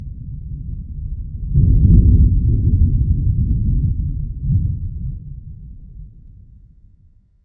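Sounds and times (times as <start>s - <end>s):
thunder: 0.0s - 7.2s.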